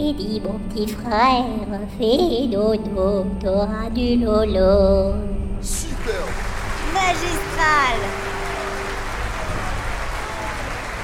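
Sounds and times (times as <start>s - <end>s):
speech: 0.1s - 8.2s
applause: 6.0s - 11.0s.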